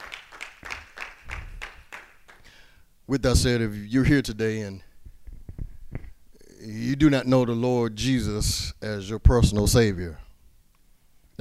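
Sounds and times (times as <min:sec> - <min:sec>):
church congregation clapping in praise: 0:00.0 - 0:02.7
speech: 0:03.1 - 0:04.9, 0:06.7 - 0:10.2.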